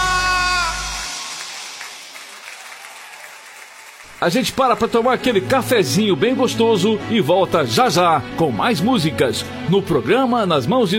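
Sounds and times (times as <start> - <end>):
brief high voice-like cheer: 0.0 - 4.5
audience applauding: 0.7 - 5.5
speech: 4.2 - 10.9.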